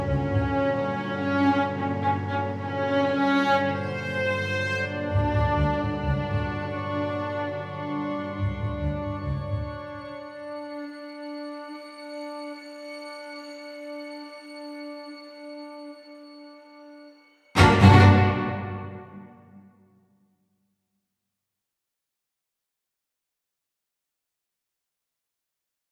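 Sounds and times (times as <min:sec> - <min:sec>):
strings: 0:00.0 - 0:10.6, 0:17.6 - 0:19.8.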